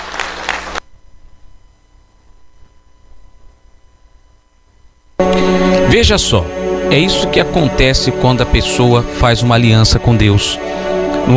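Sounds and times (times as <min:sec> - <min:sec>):
audience applauding: 0:00.0 - 0:00.8
speech: 0:06.0 - 0:11.3.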